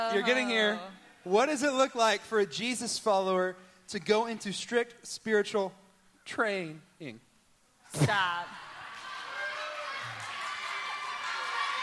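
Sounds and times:
speech: 0:00.0 - 0:07.3, 0:07.9 - 0:08.6
audience clapping and cheering: 0:08.6 - 0:11.8.

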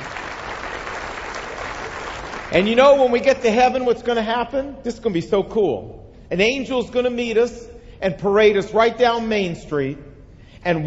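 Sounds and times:
crowd clapping: 0:00.0 - 0:03.3
speech: 0:02.5 - 0:10.8.

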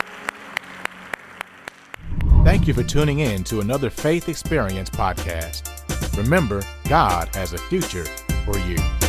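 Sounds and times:
round of applause: 0:00.0 - 0:02.0
speech: 0:02.5 - 0:08.9.

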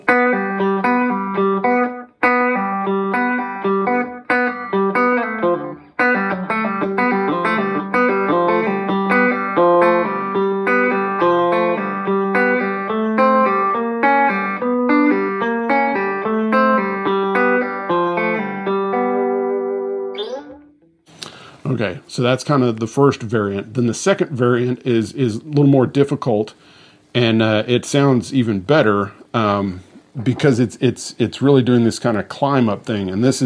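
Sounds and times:
electric guitar hammer-ons, pull-offs and open G string: 0:00.0 - 0:21.5
speech: 0:22.2 - 0:33.4.

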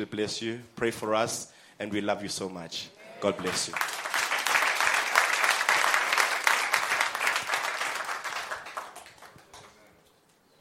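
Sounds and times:
speech: 0:00.0 - 0:04.0
audience applause: 0:03.3 - 0:09.8.

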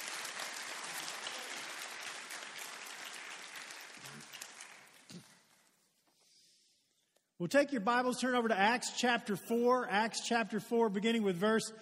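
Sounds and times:
audience applause: 0:00.0 - 0:05.4
speech: 0:07.4 - 0:11.8.

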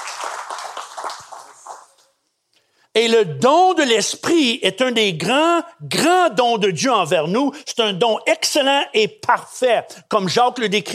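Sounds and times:
audience applause: 0:00.0 - 0:02.0
speech: 0:03.0 - 0:10.9.

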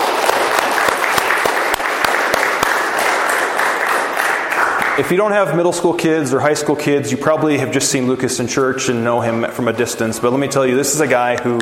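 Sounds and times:
crowd applauding: 0:00.0 - 0:05.2
speech: 0:05.0 - 0:11.6.

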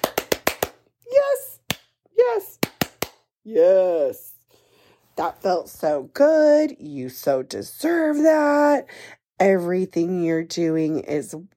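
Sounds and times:
hand clapping from a single pair of hands as a round of applause: 0:00.0 - 0:00.9, 0:01.6 - 0:03.3
speech: 0:03.4 - 0:04.2, 0:05.2 - 0:11.5.

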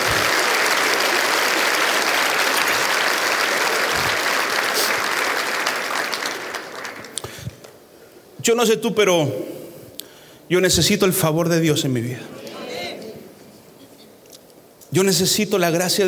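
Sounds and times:
audience applauding: 0:00.0 - 0:07.8
speech: 0:08.5 - 0:09.5, 0:10.5 - 0:12.4, 0:14.9 - 0:16.0.

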